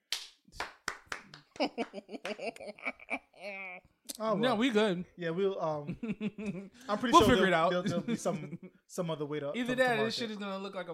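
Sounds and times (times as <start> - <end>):
hands clapping: 0.0 - 2.8
laughter: 1.5 - 3.8, 5.8 - 8.7
speech: 1.6 - 10.9.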